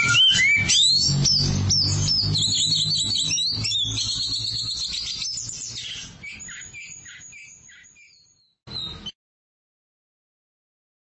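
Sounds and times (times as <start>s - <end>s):
Oriental magpie-robin song: 0.0s - 9.2s.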